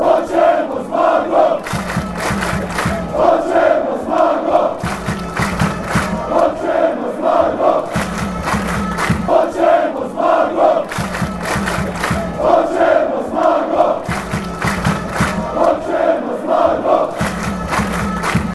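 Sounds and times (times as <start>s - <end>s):
chant: 0.0s - 18.5s.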